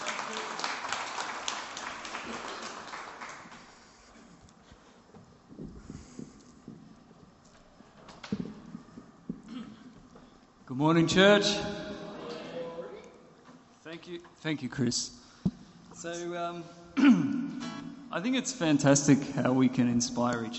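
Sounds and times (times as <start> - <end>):
round of applause: 0.0 - 4.1
speech: 10.7 - 11.7, 14.1 - 15.2, 16.0 - 17.3, 18.1 - 20.5.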